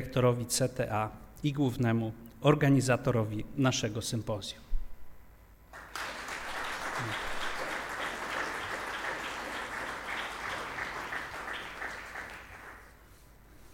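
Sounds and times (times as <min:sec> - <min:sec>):
speech: 0:00.0 - 0:04.7
audience applause: 0:05.7 - 0:13.0.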